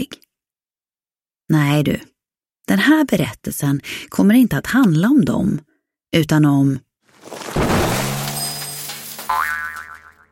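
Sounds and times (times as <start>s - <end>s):
speech: 0.0s - 0.2s, 1.5s - 2.1s, 2.7s - 7.4s
bicycle toppling over into a ditch: 7.2s - 9.9s.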